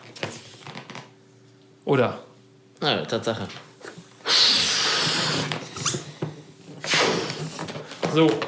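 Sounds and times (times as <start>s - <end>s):
speech: 1.9s - 3.7s, 8.1s - 8.4s
balloon being blown up: 4.2s - 6.1s, 6.8s - 7.7s.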